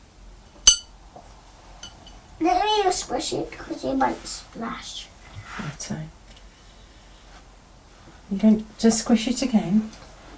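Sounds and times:
faint hiss: 0:00.0 - 0:10.3
paintbrush clinking against a glass jar of water: 0:00.7 - 0:00.9
speech: 0:02.4 - 0:06.2, 0:08.3 - 0:10.0.

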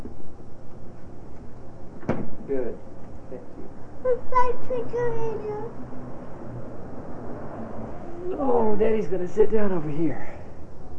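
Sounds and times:
low steady hum: 0:00.0 - 0:10.9
refrigerator door closing: 0:02.0 - 0:02.4
speech: 0:02.5 - 0:06.1, 0:08.3 - 0:10.3.

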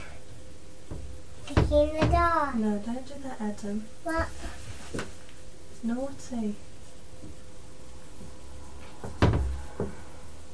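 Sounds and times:
child kicking a door: 0:00.9 - 0:02.4, 0:09.0 - 0:10.0
speech: 0:01.7 - 0:05.1, 0:05.8 - 0:07.4.

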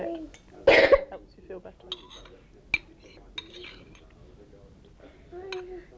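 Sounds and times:
quiet murmuring voices: 0:00.0 - 0:05.9
knife clinking on a plate while spreading marmite on toast: 0:01.9 - 0:04.1.

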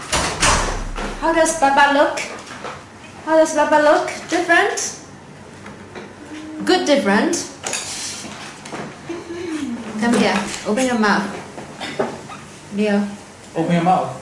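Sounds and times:
door being opened: 0:00.1 - 0:01.7
speech: 0:01.3 - 0:02.3, 0:03.3 - 0:05.0, 0:06.8 - 0:07.5, 0:10.0 - 0:11.4, 0:12.7 - 0:14.1.

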